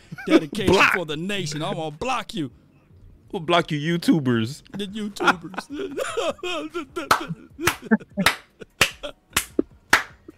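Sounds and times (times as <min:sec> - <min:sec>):
laughter: 0:00.0 - 0:01.9, 0:04.7 - 0:10.3
speech: 0:00.2 - 0:02.6, 0:03.3 - 0:08.4
hand claps: 0:07.1 - 0:10.3.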